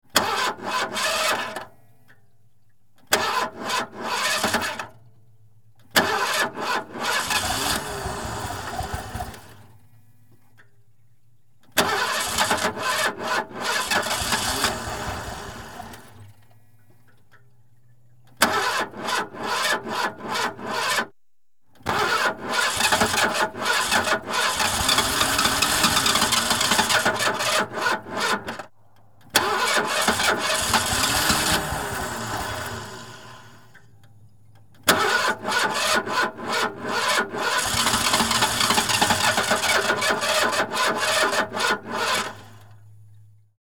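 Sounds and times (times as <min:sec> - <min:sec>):
car engine cranking on a weak battery: 0:00.1 - 0:01.8, 0:03.0 - 0:10.7, 0:11.6 - 0:21.2, 0:21.8 - 0:43.4.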